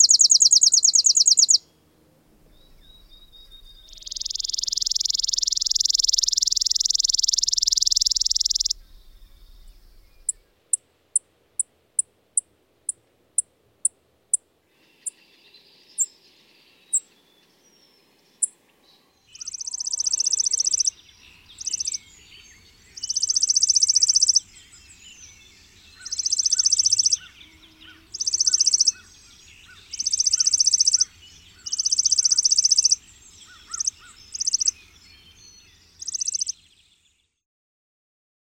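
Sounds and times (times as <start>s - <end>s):
chipping sparrow singing: 0.0s - 37.3s.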